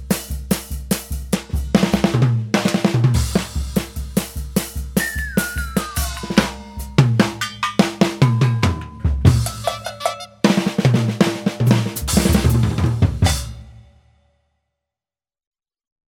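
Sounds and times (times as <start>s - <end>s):
funny drum roll: 0.0s - 13.8s
comic sound effect: 5.0s - 7.7s.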